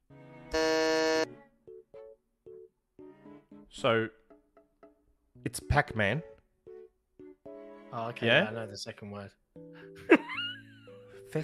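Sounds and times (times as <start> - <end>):
game-show buzzer: 0.5 - 1.3
speech: 3.7 - 4.2, 5.4 - 6.3, 7.9 - 9.4.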